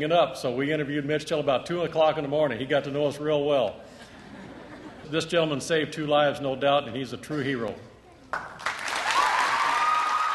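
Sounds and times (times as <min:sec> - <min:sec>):
speech: 0:00.0 - 0:04.0, 0:05.1 - 0:08.5
laughter: 0:03.9 - 0:05.2
students applauding at a school assembly: 0:08.3 - 0:10.3.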